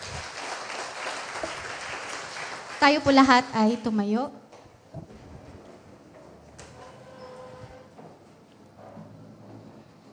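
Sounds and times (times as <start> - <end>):
church congregation clapping at a service in Sto. Tomas, Batangas: 0.0 - 3.5
speech: 2.8 - 4.4.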